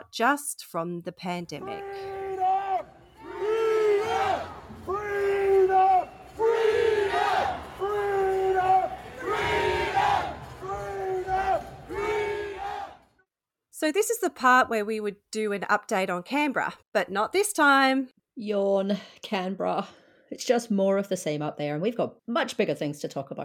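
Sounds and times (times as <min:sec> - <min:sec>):
speech: 0:00.1 - 0:02.2, 0:13.8 - 0:23.4
protest crowd shouting in the streets: 0:01.6 - 0:13.1.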